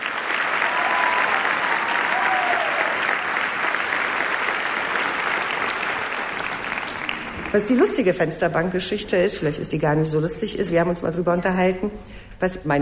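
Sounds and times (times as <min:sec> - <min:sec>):
audience applause: 0:00.0 - 0:08.1
speech: 0:07.5 - 0:12.7.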